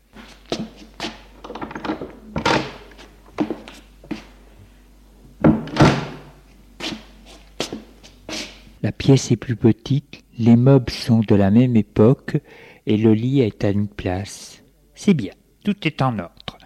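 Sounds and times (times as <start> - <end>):
door opening: 1.4 - 3.6, 5.4 - 6.3
speech: 9.0 - 16.4.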